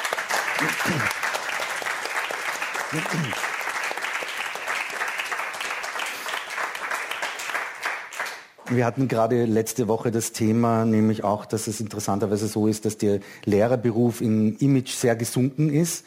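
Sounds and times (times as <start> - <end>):
audience applause: 0.0 - 8.8
speech: 0.6 - 1.3, 2.9 - 3.5, 8.7 - 16.0.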